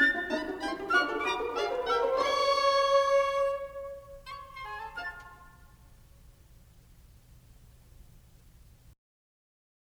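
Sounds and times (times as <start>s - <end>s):
orchestra: 0.0s - 5.8s.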